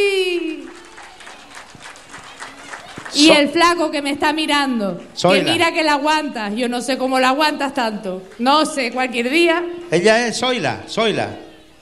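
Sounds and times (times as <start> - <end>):
audience applause: 0.0 - 3.8
speech: 3.2 - 11.4.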